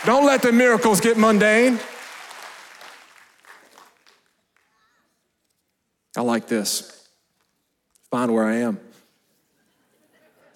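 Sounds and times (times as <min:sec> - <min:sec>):
speech: 0:00.0 - 0:02.0, 0:06.2 - 0:07.0, 0:08.1 - 0:08.9
audience clapping: 0:00.0 - 0:04.8.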